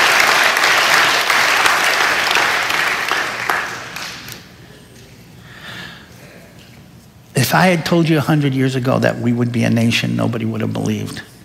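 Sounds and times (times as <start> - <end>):
audience applause: 0.0 - 4.4
speech: 7.5 - 11.3.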